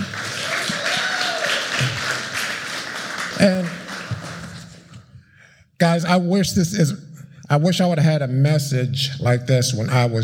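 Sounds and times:
faint cheers: 0:00.0 - 0:02.2
crowd applause: 0:00.0 - 0:04.9
speech: 0:03.4 - 0:03.8, 0:05.8 - 0:10.2.

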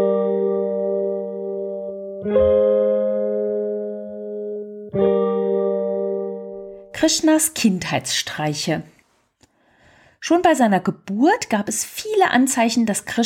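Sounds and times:
music: 0:00.0 - 0:07.0
speech: 0:02.2 - 0:02.6, 0:07.0 - 0:09.0, 0:10.2 - 0:13.2.

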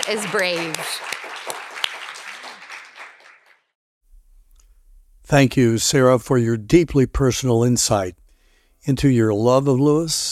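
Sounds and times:
audience applause: 0:00.0 - 0:03.7
speech: 0:00.1 - 0:01.2, 0:05.3 - 0:08.2, 0:08.8 - 0:10.2.

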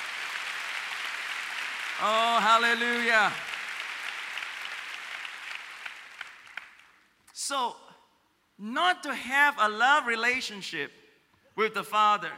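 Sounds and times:
audience clapping: 0:00.0 - 0:07.1
speech: 0:02.0 - 0:03.5, 0:07.5 - 0:07.9, 0:08.6 - 0:11.0, 0:11.6 - 0:12.3.

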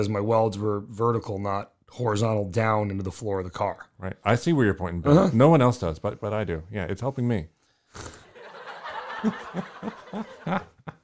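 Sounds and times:
speech: 0:00.0 - 0:08.2, 0:09.2 - 0:10.7
canned studio audience laughter sound effect: 0:08.3 - 0:11.0.

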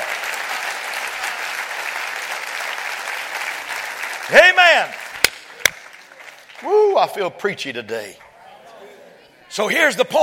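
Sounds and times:
audience clapping hands: 0:00.0 - 0:07.4
speech: 0:04.3 - 0:05.0, 0:06.6 - 0:08.2, 0:09.5 - 0:10.2.

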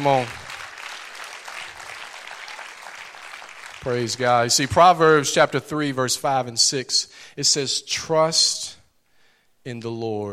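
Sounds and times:
speech: 0:00.0 - 0:00.4, 0:03.8 - 0:08.8, 0:09.6 - 0:10.3
audience clapping in praise: 0:00.0 - 0:05.2.

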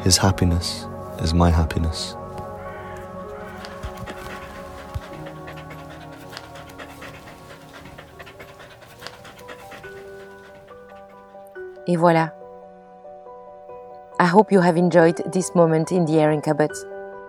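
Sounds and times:
speech: 0:00.0 - 0:02.2, 0:11.9 - 0:12.4, 0:14.2 - 0:16.9
dog panting: 0:03.5 - 0:11.6.

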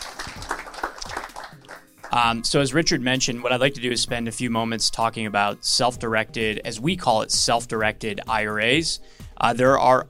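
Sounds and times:
audience round of applause: 0:00.0 - 0:02.2
speech: 0:02.1 - 0:10.0.

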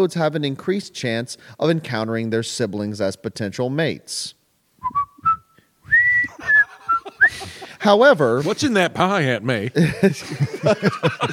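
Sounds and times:
speech: 0:00.0 - 0:05.0, 0:07.3 - 0:11.3
whistled tune: 0:04.8 - 0:07.4
laughter: 0:06.1 - 0:08.9, 0:09.7 - 0:11.3.

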